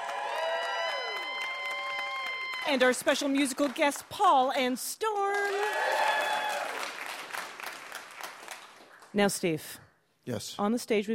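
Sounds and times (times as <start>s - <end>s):
scattered whoops: 0.0s - 2.8s, 5.5s - 6.8s
audience applause: 0.0s - 4.4s, 5.2s - 9.1s
speech: 2.6s - 5.6s, 9.2s - 11.1s.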